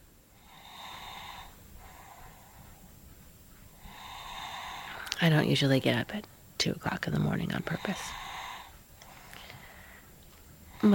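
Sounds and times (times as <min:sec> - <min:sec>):
sleeping child breathing and snoring: 0:00.4 - 0:02.4, 0:03.9 - 0:05.1, 0:07.7 - 0:08.8
speech: 0:05.2 - 0:08.2.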